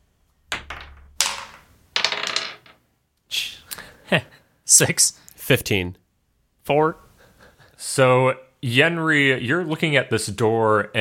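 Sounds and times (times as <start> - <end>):
dice clattering across a hard surface: 0.5 - 2.8
speech: 4.1 - 6.0, 6.7 - 7.0, 7.8 - 10.9.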